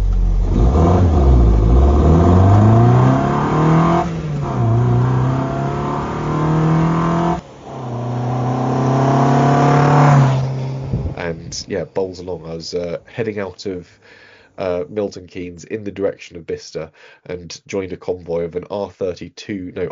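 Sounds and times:
car engine with induction snarl revving: 0.0s - 12.0s
speech: 12.1s - 19.9s.

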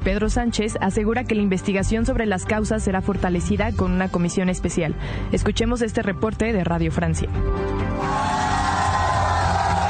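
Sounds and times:
speech: 0.0s - 8.3s
large crowd cheering and shouting in a city centre: 8.0s - 9.8s.

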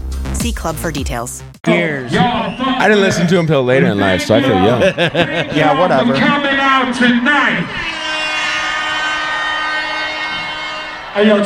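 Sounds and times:
speech: 0.4s - 7.9s, 11.2s - 11.4s
laughter: 1.8s - 8.1s
train horn: 6.5s - 11.4s.

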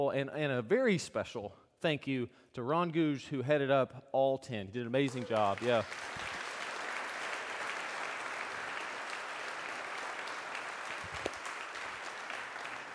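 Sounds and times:
speech: 0.0s - 6.2s
audience applause: 5.1s - 12.9s.

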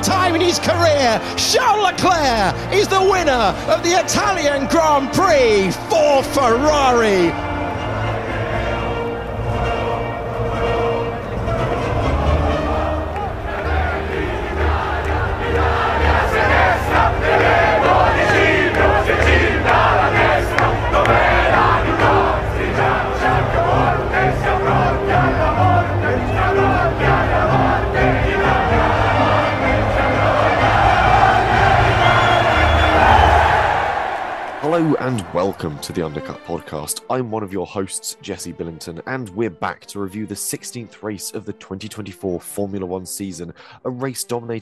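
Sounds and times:
Tifosi crowd chanting and cheering at Monza: 0.0s - 36.1s
speech: 0.3s - 7.5s, 34.7s - 44.6s
Tifosi crowd roaring at Monza, Italian Grand Prix: 5.0s - 36.0s.

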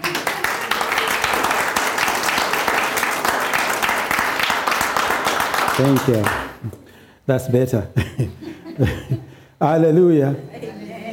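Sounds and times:
audience clapping hands: 0.0s - 6.9s
speech: 5.8s - 10.6s
laughter: 8.0s - 9.4s.

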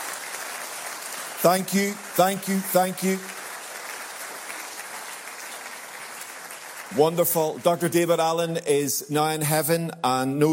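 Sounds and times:
audience applause: 0.0s - 8.1s
speech: 1.4s - 3.3s, 6.9s - 10.5s.

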